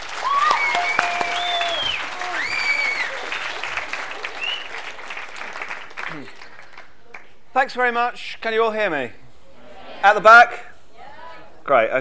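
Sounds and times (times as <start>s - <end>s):
audience applauding to welcome an author at a book talk: 0.0s - 7.3s
speech: 7.6s - 9.2s, 10.0s - 10.6s, 11.7s - 12.0s.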